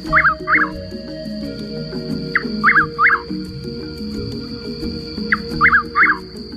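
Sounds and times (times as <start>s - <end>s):
Chuck-will's-widow calling: 0.0s - 6.5s.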